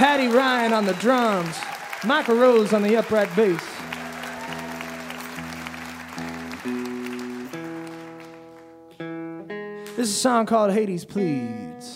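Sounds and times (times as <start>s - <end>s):
audience applause: 0.0s - 8.8s
speech: 0.2s - 3.7s, 10.0s - 11.9s.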